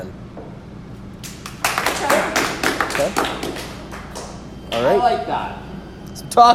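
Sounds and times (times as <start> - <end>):
crowd clapping: 1.1 - 5.2
speech: 3.0 - 3.7, 4.7 - 5.6, 6.4 - 6.5.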